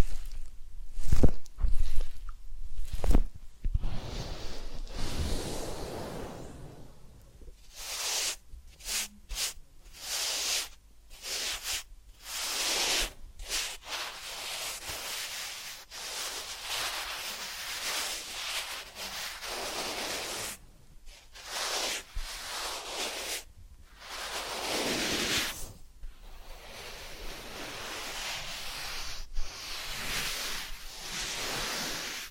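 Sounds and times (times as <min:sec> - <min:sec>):
soft rubbing and brushing from an ear cleaning and massage session: 0:00.0 - 0:32.3
sharp loud scratches: 0:07.7 - 0:32.3.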